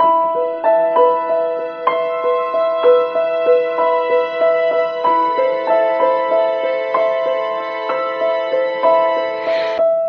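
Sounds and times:
sad piano loop: 0:00.0 - 0:10.0.

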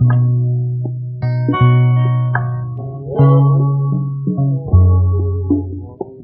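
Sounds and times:
guitar loops: 0:00.0 - 0:06.2.

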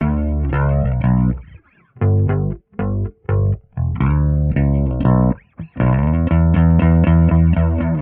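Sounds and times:
phonk bass loop: 0:00.0 - 0:08.0.

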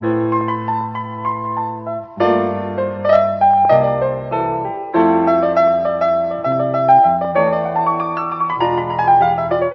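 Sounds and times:
piano: 0:00.0 - 0:09.7.

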